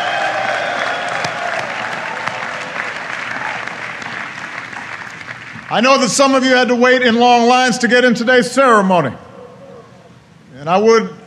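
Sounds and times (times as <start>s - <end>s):
audience applause: 0.0s - 6.2s
speech: 5.7s - 9.2s, 10.6s - 11.2s.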